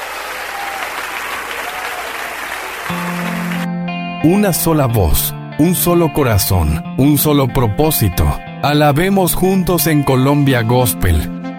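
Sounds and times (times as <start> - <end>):
congregation applause at a gospel service in Colombia: 0.0 - 3.7
speech: 4.2 - 11.4.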